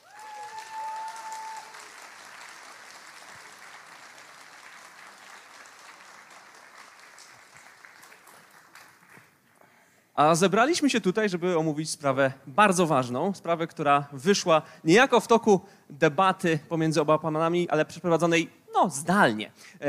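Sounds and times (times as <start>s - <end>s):
cheer or whistle: 0.0s - 1.8s
audience applause: 0.0s - 9.4s
speech: 10.2s - 19.8s.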